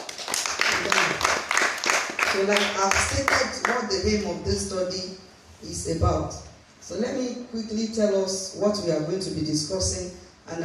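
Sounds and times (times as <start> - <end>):
crowd clapping: 0.0 - 3.9
speech: 2.4 - 10.6.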